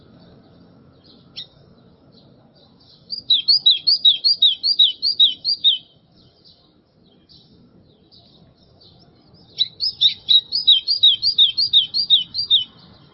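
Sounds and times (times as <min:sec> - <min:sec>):
White-throated seedeater singing rapid downslurred whistled notes: 0:03.1 - 0:06.0, 0:09.5 - 0:12.9.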